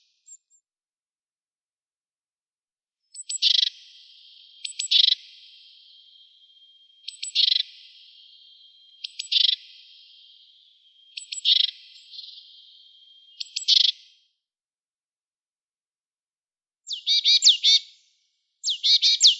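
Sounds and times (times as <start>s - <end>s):
birds trilling around a school: 3.1s - 14.1s, 16.9s - 17.8s, 18.7s - 19.3s.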